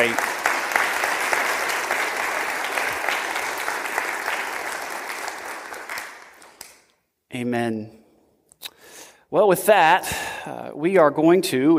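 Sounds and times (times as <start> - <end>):
speech: 0.0 - 0.3, 7.3 - 8.0, 9.3 - 11.7
audience applause for veterans: 0.0 - 6.8.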